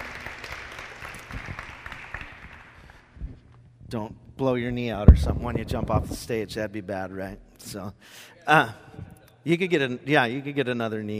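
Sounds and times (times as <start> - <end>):
wild applause: 0.0 - 3.0
speech: 3.9 - 11.1.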